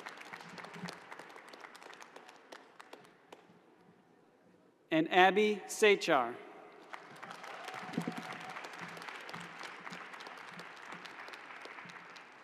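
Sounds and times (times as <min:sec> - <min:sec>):
audience applause: 0:00.0 - 0:03.1, 0:06.9 - 0:12.4
speech: 0:05.0 - 0:06.4.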